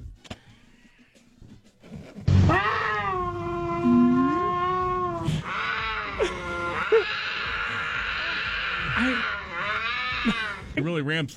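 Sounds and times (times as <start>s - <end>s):
cougar mating call yowls: 2.3s - 10.8s
speech: 11.0s - 11.3s.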